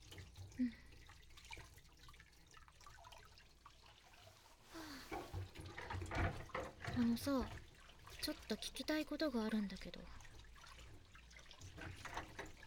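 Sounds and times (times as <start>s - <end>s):
water running from a sink tap while dishes are rinsed: 0.0s - 12.6s
speech: 0.6s - 0.8s, 7.0s - 7.6s, 8.2s - 10.2s.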